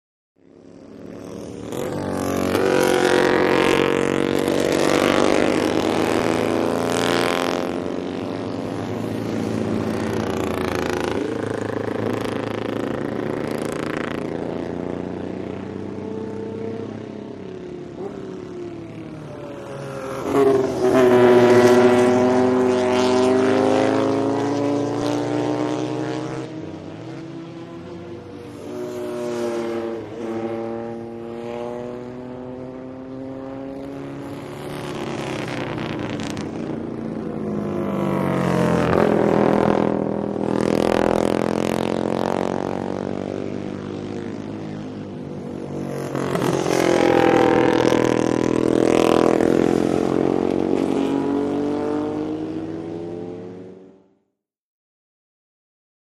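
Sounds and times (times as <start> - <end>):
motorcycles road racing: 0.4 - 54.3.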